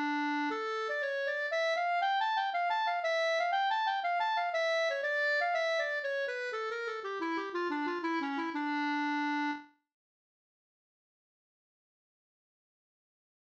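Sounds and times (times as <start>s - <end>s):
polska folk tune: 0.0s - 9.8s.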